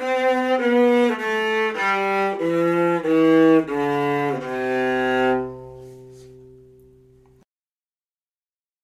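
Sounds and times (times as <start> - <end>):
plywood viola playing a scale: 0.0 - 6.8.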